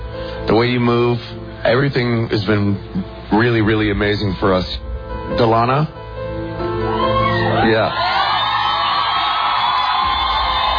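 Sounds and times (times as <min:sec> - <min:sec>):
speech: 0:00.5 - 0:06.0, 0:07.6 - 0:08.3
girls cheering at a singing competition: 0:06.8 - 0:10.7.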